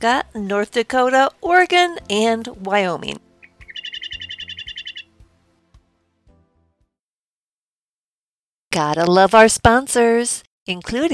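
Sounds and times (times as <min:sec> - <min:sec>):
speech: 0:00.0 - 0:03.2, 0:08.7 - 0:11.1
western meadowlark song: 0:00.0 - 0:06.0.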